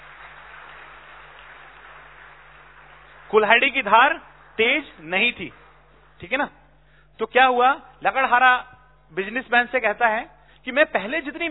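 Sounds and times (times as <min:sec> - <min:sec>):
audience clapping loudly: 0:00.0 - 0:06.5
speech: 0:03.3 - 0:05.6, 0:06.2 - 0:06.6, 0:07.2 - 0:11.4.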